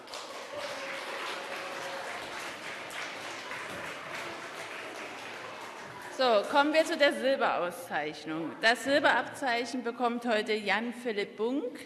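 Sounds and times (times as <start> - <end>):
audience applause: 0.0 - 6.7
speech: 6.2 - 11.8.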